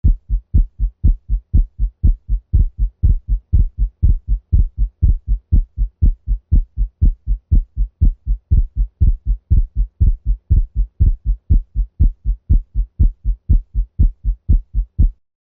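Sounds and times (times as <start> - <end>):
dog heartbeat with split second heart sound: 0.0 - 15.2.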